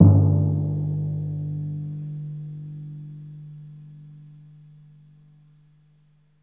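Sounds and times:
pianissimo timpani note on G1: 0:00.0 - 0:03.7.

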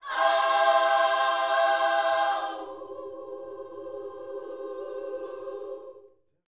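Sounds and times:
gospel vocal phrase: 0:00.0 - 0:06.0.

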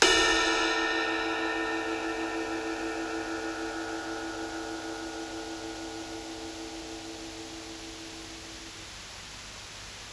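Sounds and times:
psychedelic drums: 0:00.0 - 0:04.0
ride cymbal: 0:00.0 - 0:09.6.

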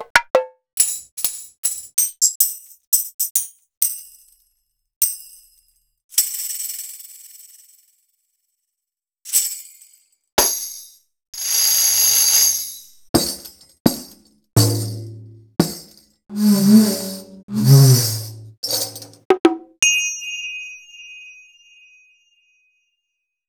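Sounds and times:
Roland BK-5 keyboard percussion: 0:00.1 - 0:04.4, 0:05.0 - 0:06.8, 0:09.3 - 0:20.6.

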